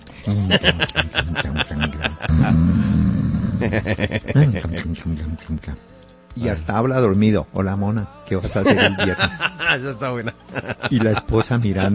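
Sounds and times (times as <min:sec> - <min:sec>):
speech: 0:00.2 - 0:01.6, 0:03.6 - 0:11.9
laughter: 0:00.2 - 0:02.8, 0:03.6 - 0:05.4, 0:08.4 - 0:11.9
man imitating loud snoring: 0:02.0 - 0:05.6.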